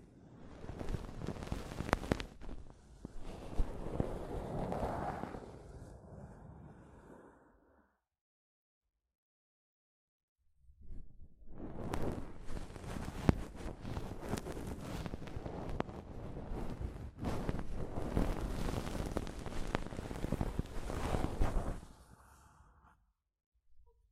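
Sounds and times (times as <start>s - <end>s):
soft fabric brushing over a microphone: 0.6s - 5.6s, 11.9s - 22.1s.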